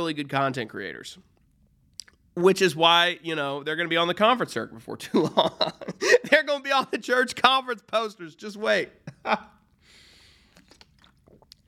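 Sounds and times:
speech: 0.0 - 1.3, 2.4 - 10.0
person drinking a sip of water: 9.7 - 11.6.

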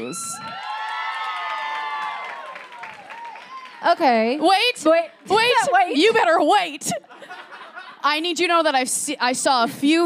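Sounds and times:
speech: 0.0 - 0.7, 3.8 - 10.0
audience applause and cheering: 0.0 - 6.0
laughter: 6.8 - 8.1.

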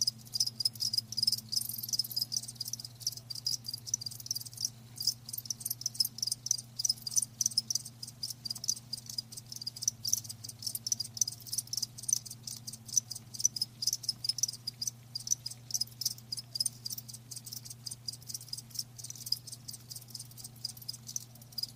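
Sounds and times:
crickets chirping: 0.0 - 21.7.

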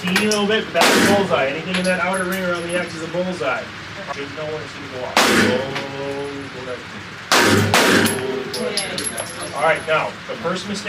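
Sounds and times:
speech: 0.0 - 10.8
pistol shots at a shooting range: 0.8 - 1.3, 5.2 - 5.7, 7.3 - 8.2
bullet impact: 5.2 - 5.7, 7.3 - 9.4.

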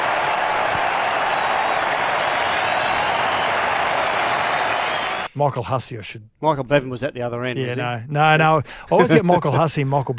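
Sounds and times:
cricket crowd cheering and applauding: 0.0 - 5.3
speech: 5.4 - 10.1.

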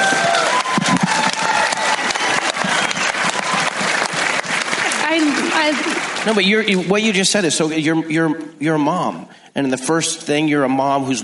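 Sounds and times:
voices and whoops: 0.0 - 4.1
audience applause: 0.0 - 6.9
speech: 6.2 - 11.2.

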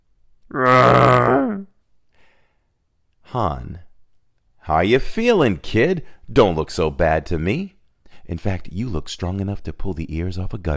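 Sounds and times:
Wookiee growling a greeting: 0.5 - 1.7
speech: 3.3 - 3.9, 4.7 - 10.7.

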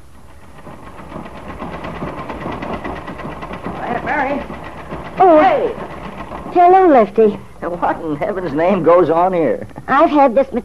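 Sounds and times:
sewing machine running: 0.0 - 7.9
speech: 4.1 - 4.6, 5.2 - 5.8, 6.5 - 10.6.

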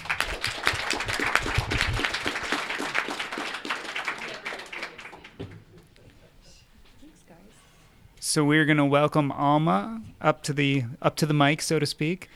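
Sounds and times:
audience applause at a live financial independence camp gathering: 0.0 - 5.9
speech: 8.4 - 12.3.

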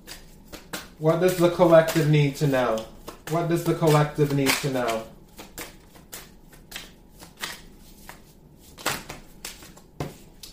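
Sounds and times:
playing cards shuffled by hand, a clump falling out: 0.0 - 10.5
speech: 1.0 - 5.2.

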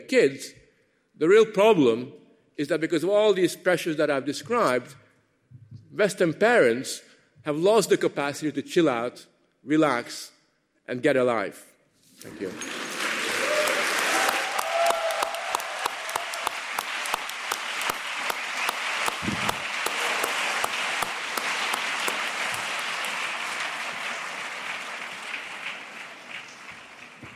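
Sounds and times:
speech: 0.0 - 0.6, 1.2 - 5.0, 5.9 - 12.9
audience applause: 12.3 - 27.3
whoops: 13.2 - 16.6.

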